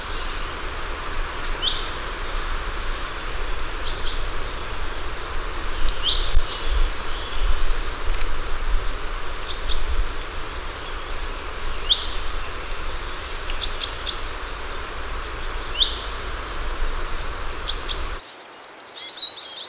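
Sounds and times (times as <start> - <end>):
birds singing in a conifer forest: 0.0 - 19.6.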